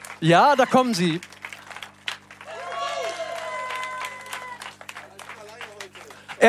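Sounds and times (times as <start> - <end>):
audience applause: 0.0 - 6.4
speech: 0.2 - 1.3.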